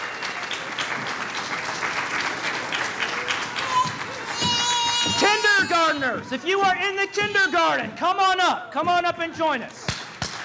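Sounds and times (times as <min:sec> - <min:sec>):
audience applause: 0:00.0 - 0:07.6
speech: 0:05.2 - 0:09.8.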